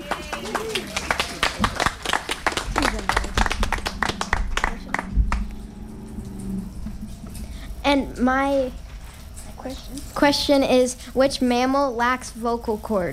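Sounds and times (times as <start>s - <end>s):
audience round of applause: 0.0s - 5.6s
speech: 7.9s - 8.8s, 9.6s - 13.1s.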